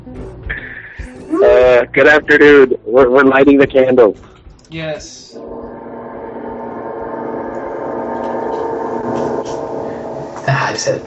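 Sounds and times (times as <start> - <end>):
speech: 1.4 - 5.6, 10.7 - 11.0
gong sound effect resembling an organ: 5.2 - 11.0.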